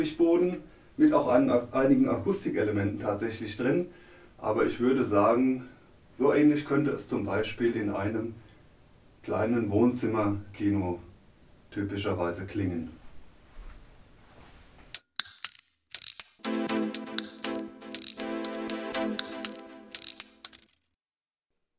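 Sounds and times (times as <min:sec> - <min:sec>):
speech: 0:00.0 - 0:08.4, 0:09.2 - 0:11.0, 0:11.7 - 0:13.0
drumming on a toy drum kit in a room: 0:15.0 - 0:20.8.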